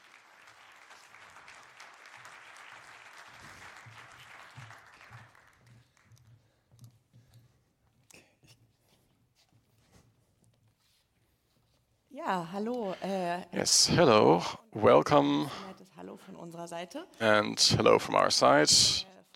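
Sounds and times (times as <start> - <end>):
audience clapping: 0.0 - 6.7
speech: 12.2 - 15.7, 16.4 - 19.3.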